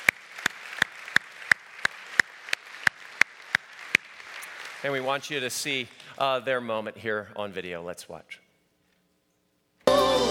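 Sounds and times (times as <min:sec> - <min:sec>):
audience clapping in unison: 0:00.0 - 0:04.8
speech: 0:04.8 - 0:08.4.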